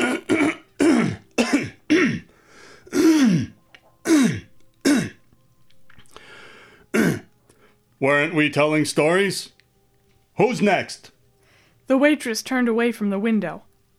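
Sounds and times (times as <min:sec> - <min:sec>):
man clearing his throat: 0:00.0 - 0:02.3, 0:02.9 - 0:05.2, 0:06.9 - 0:07.3
speech: 0:08.0 - 0:09.6, 0:10.4 - 0:11.2, 0:11.9 - 0:13.9.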